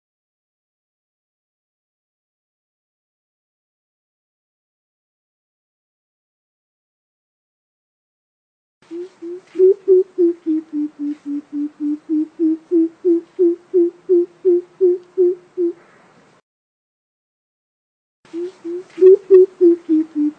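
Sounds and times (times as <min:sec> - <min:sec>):
coucal giving deep hollow hoots: 0:08.9 - 0:15.9, 0:18.3 - 0:20.3.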